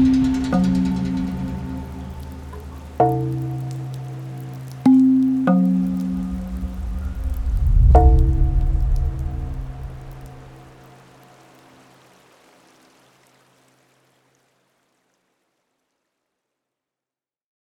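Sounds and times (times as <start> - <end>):
scary horror music: 0.0 - 10.7.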